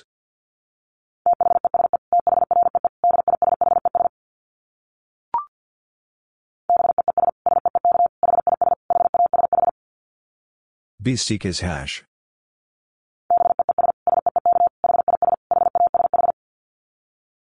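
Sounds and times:
rapid Morse code tone at 50 words per minute: 1.3s - 4.1s, 6.7s - 9.7s, 13.3s - 16.4s
speech: 11.0s - 12.1s.

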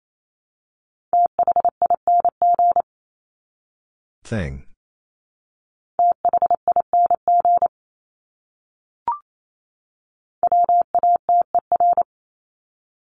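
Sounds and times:
Morse code tones at 28 wpm: 1.2s - 2.8s, 6.0s - 7.7s, 10.4s - 12.1s
speech: 4.3s - 4.7s.

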